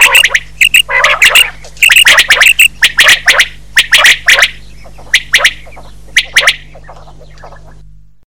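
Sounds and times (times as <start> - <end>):
male quail calling: 0.0 - 7.8.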